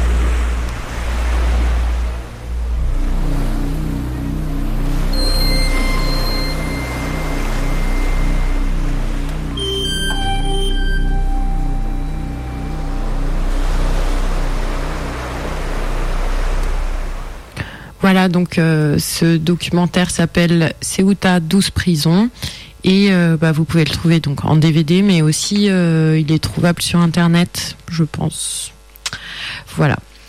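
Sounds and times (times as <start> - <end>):
low throbbing: 0.0 - 17.6
sea waves roaring: 0.0 - 17.6
brief high tones: 4.1 - 15.1
speech: 18.1 - 30.1.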